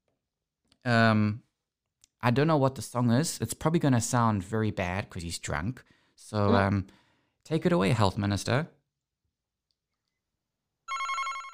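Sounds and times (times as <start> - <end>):
speech: 0.8 - 1.4, 2.2 - 8.8
telephone ringing: 10.9 - 11.5.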